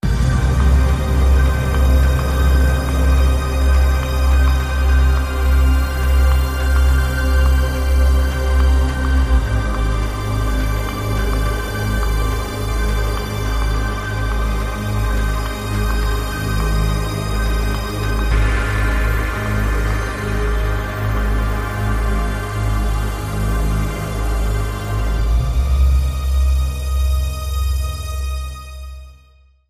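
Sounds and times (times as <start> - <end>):
ambient music: 0.0 - 29.6.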